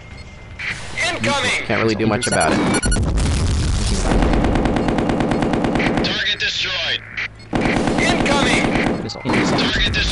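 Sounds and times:
speech: 1.1 - 3.2, 3.9 - 4.4, 6.4 - 7.2, 8.3 - 10.1
machine gun fire in a video game: 2.9 - 6.3, 7.5 - 9.0.

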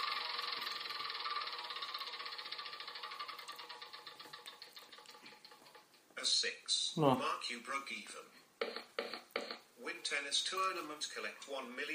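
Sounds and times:
wheel spun in a video game ticking: 0.0 - 6.1
speech: 6.3 - 8.8, 10.1 - 11.9.

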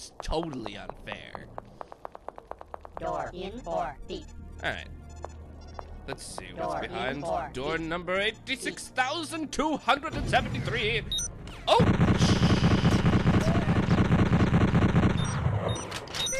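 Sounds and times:
speech: 0.0 - 1.8, 3.0 - 5.0, 6.1 - 12.0
rapid gunfire in a video game: 11.7 - 15.6.

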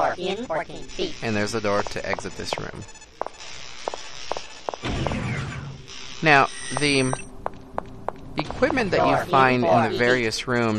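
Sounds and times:
speech: 0.1 - 4.0, 6.2 - 7.3, 8.4 - 10.7
video game footsteps as a character walks: 1.4 - 5.6, 6.6 - 10.1.

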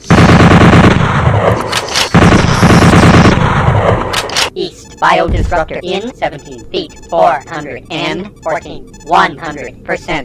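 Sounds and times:
automatic pole gun firing in video game: 0.0 - 3.6
speech: 5.0 - 10.2.

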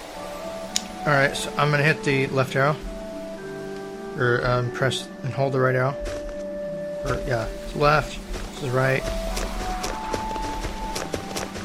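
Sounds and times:
speech: 1.0 - 2.9, 4.2 - 6.2, 7.0 - 9.0
footsteps of a character walking in a video game: 6.0 - 11.6.

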